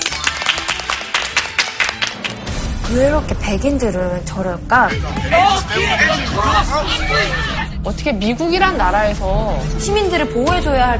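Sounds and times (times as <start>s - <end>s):
audience applause: 0.0s - 2.5s
speech: 2.9s - 10.9s.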